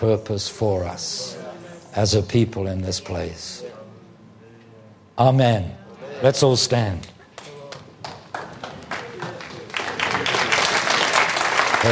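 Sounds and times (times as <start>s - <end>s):
speech: 0.0s - 1.4s, 2.0s - 3.8s, 5.2s - 7.1s
audience clapping: 7.3s - 11.9s.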